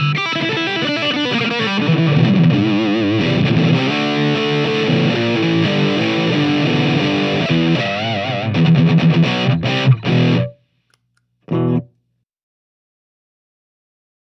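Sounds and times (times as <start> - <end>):
guitar riffs: 0.0 - 10.6, 11.5 - 12.0.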